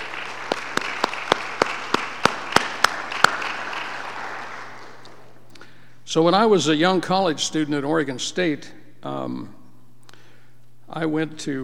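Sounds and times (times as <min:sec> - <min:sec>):
audience applause: 0:00.0 - 0:05.4
speech: 0:06.1 - 0:09.6, 0:10.9 - 0:11.6.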